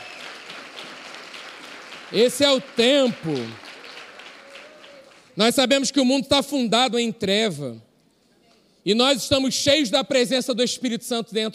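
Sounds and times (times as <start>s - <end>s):
audience clapping: 0.0s - 5.4s
speech: 2.1s - 3.6s, 5.4s - 7.9s, 8.8s - 11.5s.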